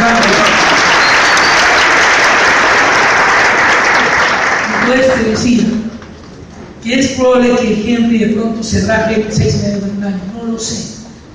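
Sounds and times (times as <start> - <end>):
audience applause: 0.0 - 5.5
speech: 4.9 - 6.0, 6.8 - 11.0.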